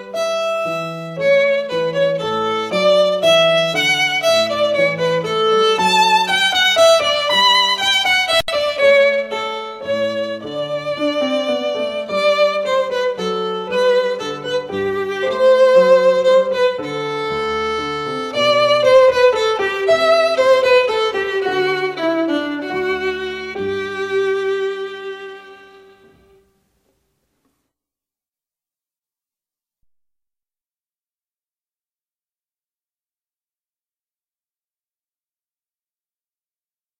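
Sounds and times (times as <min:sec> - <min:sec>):
minuet piece: 0:00.0 - 0:26.5.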